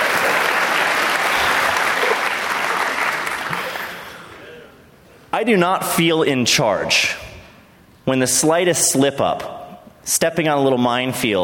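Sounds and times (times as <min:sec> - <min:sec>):
audience applause: 0:00.0 - 0:04.3
speech: 0:05.4 - 0:07.2, 0:08.0 - 0:11.4.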